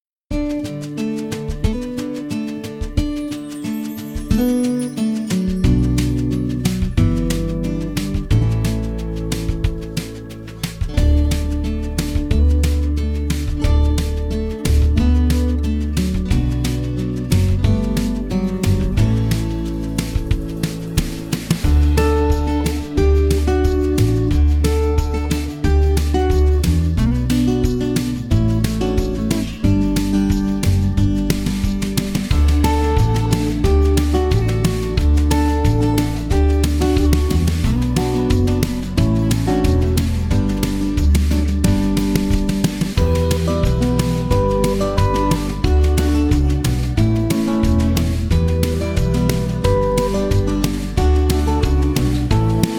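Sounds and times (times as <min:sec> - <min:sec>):
music: 0:00.0 - 0:52.7.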